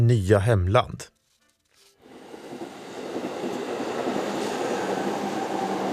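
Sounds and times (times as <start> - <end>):
speech: 0.0 - 1.2
train rumbling on rails: 2.1 - 5.9.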